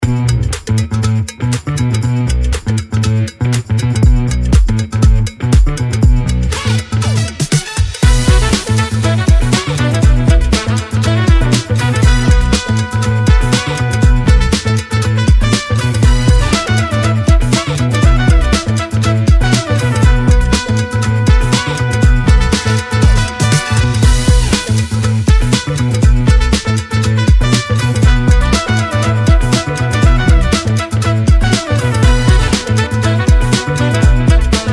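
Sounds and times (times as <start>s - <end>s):
funk music: 0.0s - 34.7s.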